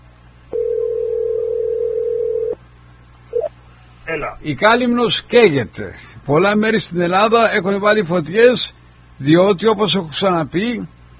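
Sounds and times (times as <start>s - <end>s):
telephone dial tone while calling back: 0.5s - 2.6s
speech: 4.1s - 11.0s.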